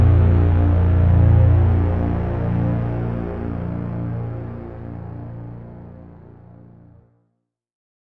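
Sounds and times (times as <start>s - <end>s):
D-50 synthesizer motor orchestra: 0.0s - 4.4s.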